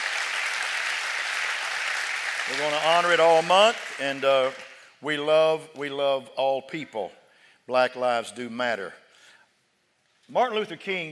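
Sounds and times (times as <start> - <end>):
audience clapping hands: 0.0 - 5.0
speech: 2.5 - 9.0, 10.3 - 11.1.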